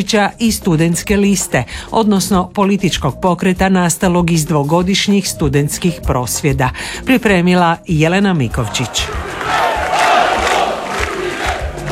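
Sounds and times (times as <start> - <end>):
speech: 0.0 - 9.6
hundreds of supporters chanting in front of the presidency building: 8.6 - 11.8.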